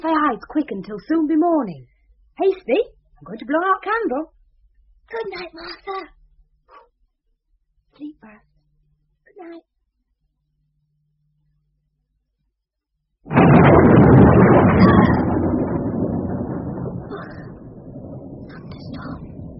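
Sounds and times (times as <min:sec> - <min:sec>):
speech: 0:00.3 - 0:04.4, 0:05.1 - 0:06.2, 0:08.0 - 0:08.5, 0:09.4 - 0:09.7, 0:13.2 - 0:13.5
thunderstorm thunder: 0:13.3 - 0:19.5.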